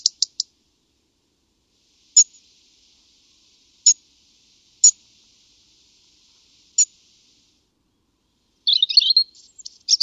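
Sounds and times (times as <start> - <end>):
European robin song: 0.0 - 0.5, 7.9 - 10.0.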